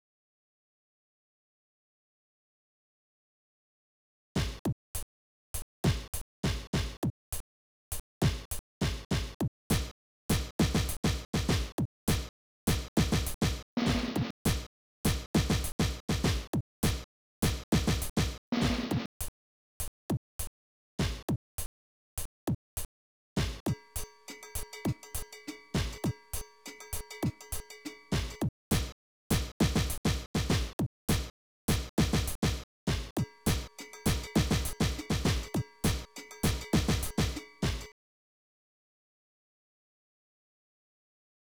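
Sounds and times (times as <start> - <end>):
drums: 4.4 - 5.0, 5.8 - 37.9.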